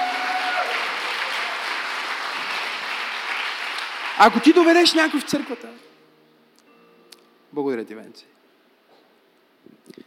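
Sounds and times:
audience applause: 0:00.0 - 0:05.8
speech: 0:04.2 - 0:05.9, 0:07.6 - 0:08.4.

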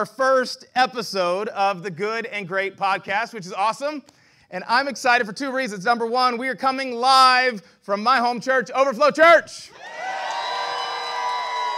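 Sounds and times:
speech: 0:00.0 - 0:10.0
live church audience cheering: 0:09.7 - 0:11.7.

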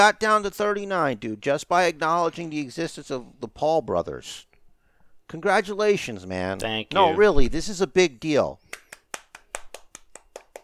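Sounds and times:
speech: 0:00.0 - 0:04.5, 0:05.3 - 0:08.7
one person clapping hands: 0:08.7 - 0:10.6.

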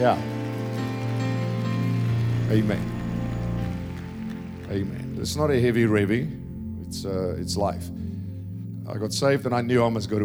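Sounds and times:
speech: 0:00.0 - 0:00.3, 0:02.5 - 0:02.9, 0:04.7 - 0:08.0, 0:08.9 - 0:10.2
audience clapping: 0:00.0 - 0:06.3.

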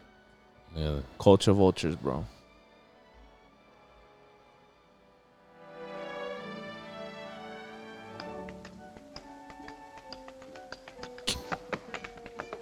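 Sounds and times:
speech: 0:00.8 - 0:02.3
sustained orchestral music: 0:02.5 - 0:12.3
tap dancing shoes striking a floor: 0:08.1 - 0:12.6.

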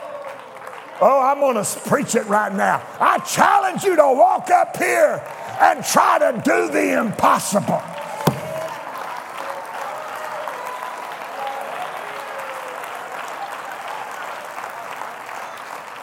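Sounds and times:
audience clapping hands: 0:00.0 - 0:03.1, 0:07.2 - 0:16.0
speech: 0:01.0 - 0:08.0.

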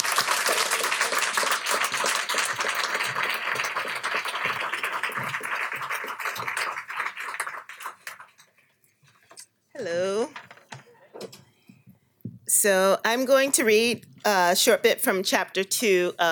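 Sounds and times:
audience applause welcoming two speakers at Politics and Prose: 0:00.0 - 0:08.4
speech: 0:12.6 - 0:16.3.

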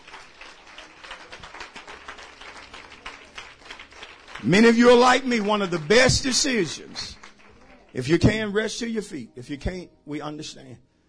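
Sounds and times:
audience clapping hands in praise in church: 0:00.0 - 0:08.6
speech: 0:04.4 - 0:07.2, 0:07.9 - 0:10.9.

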